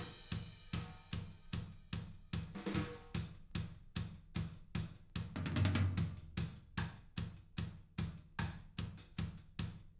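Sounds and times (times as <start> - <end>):
live drums: 0.0 - 9.9.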